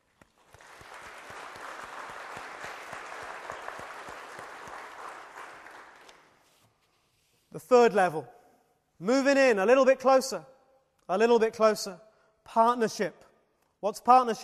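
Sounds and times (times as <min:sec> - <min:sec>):
audience applause: 0:00.0 - 0:06.3
speech: 0:07.6 - 0:08.4, 0:09.0 - 0:10.5, 0:11.1 - 0:13.2, 0:13.8 - 0:14.4.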